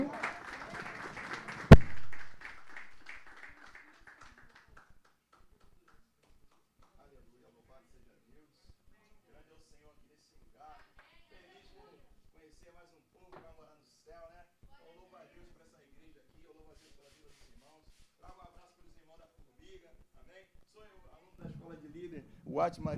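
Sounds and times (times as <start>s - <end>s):
audience applause: 0.0s - 4.9s
speech: 21.7s - 22.9s.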